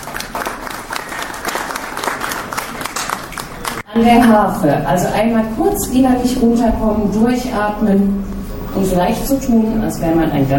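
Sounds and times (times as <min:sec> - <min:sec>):
crowd applauding: 0:00.0 - 0:03.9
speech: 0:04.0 - 0:10.5.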